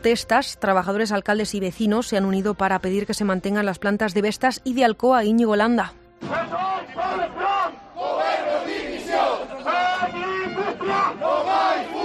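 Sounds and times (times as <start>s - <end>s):
speech: 0.0s - 7.4s
protest crowd chanting slogans: 6.2s - 12.0s.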